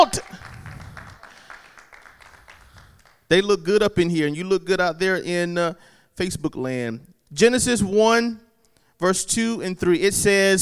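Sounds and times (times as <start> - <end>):
speech: 0.0 - 0.4, 3.3 - 8.4, 9.0 - 10.6
congregation clapping hands at a church service: 0.0 - 3.3.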